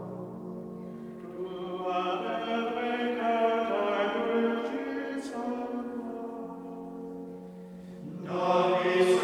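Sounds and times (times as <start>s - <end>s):
Gregorian male choir chanting: 1.4s - 6.6s, 8.0s - 9.2s.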